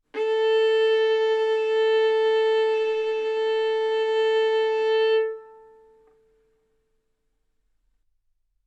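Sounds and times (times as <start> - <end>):
violin arco on A string: 0.0 - 6.4.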